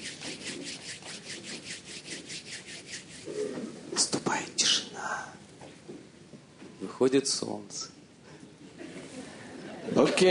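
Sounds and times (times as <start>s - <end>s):
palms rubbing together imitating rustling wind: 0.0s - 5.9s
speech: 7.0s - 7.9s, 10.0s - 10.2s.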